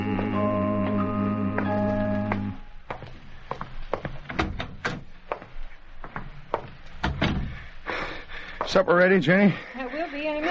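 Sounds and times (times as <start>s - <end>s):
held musical chord: 0.0s - 2.7s
footsteps climbing a flight of stairs: 0.0s - 9.0s
door being locked: 4.3s - 5.1s, 7.0s - 7.6s
speech: 8.7s - 10.4s.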